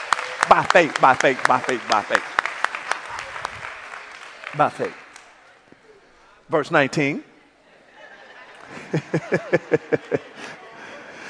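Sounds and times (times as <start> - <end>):
audience hand clapping: 0.0 - 5.5
speech: 0.6 - 2.4, 4.6 - 5.0, 6.5 - 7.3, 8.9 - 10.6
laughter: 7.6 - 11.2.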